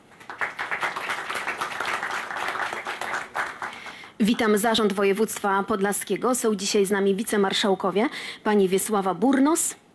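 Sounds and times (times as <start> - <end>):
crowd clapping: 0.0 - 4.2
speech: 4.2 - 9.8.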